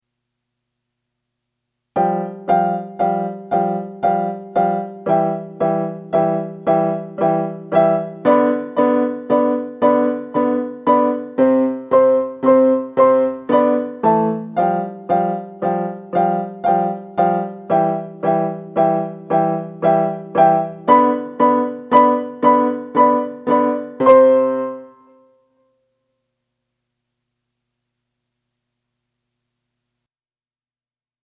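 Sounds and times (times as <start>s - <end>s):
piano duet: 2.0s - 25.3s.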